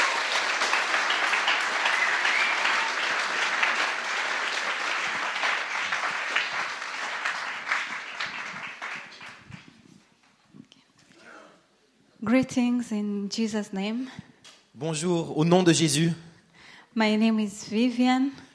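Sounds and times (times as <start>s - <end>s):
audience applause welcoming a speaker: 0.0s - 10.0s
speech: 12.3s - 16.3s, 17.0s - 18.4s.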